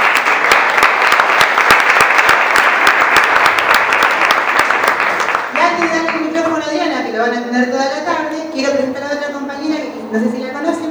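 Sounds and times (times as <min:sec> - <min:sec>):
audience applause welcoming a speaker at a talk: 0:00.0 - 0:07.2
speech: 0:07.3 - 0:09.2, 0:10.1 - 0:10.9.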